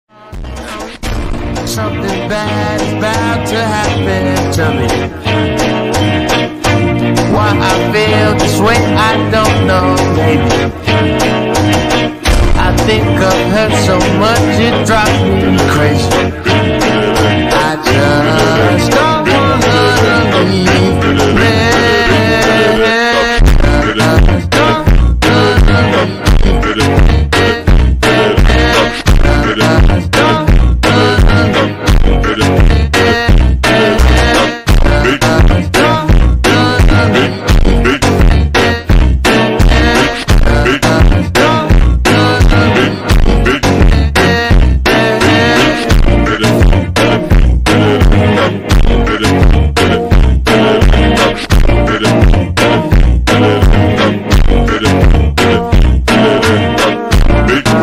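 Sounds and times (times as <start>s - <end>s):
ultra slowed funk music with reverb: 0.1s - 57.8s.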